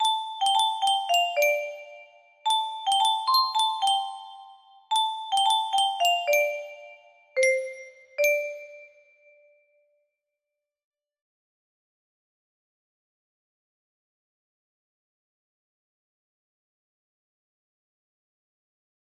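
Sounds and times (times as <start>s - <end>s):
melody: 0.0s - 9.0s.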